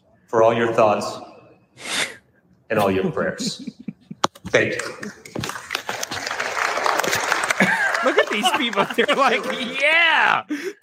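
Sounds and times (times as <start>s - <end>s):
speech: 0.3s - 1.9s, 2.7s - 3.9s, 4.5s - 5.2s, 8.0s - 10.8s
laughter: 2.8s - 10.8s
audience applause: 5.3s - 10.0s.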